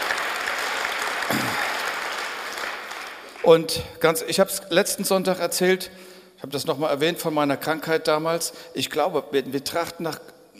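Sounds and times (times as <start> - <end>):
audience applause: 0.0 - 3.5
speech: 3.4 - 10.4.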